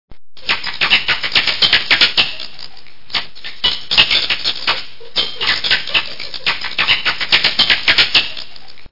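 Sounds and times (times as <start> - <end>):
bats: 0.4 - 8.9.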